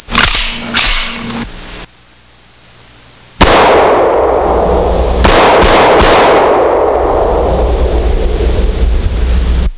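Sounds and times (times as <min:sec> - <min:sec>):
45 cal gunshots: 0:00.1 - 0:01.2, 0:03.4 - 0:08.6.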